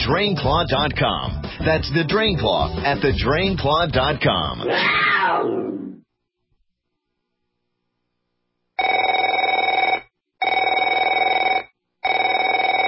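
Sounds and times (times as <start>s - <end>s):
speech: 0.1s - 5.8s
telephone ringing with electronic trill: 8.8s - 12.8s.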